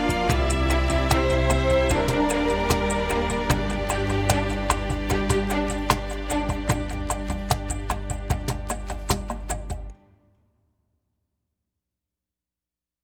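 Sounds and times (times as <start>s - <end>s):
game music percussion loading loop: 0.0s - 10.0s.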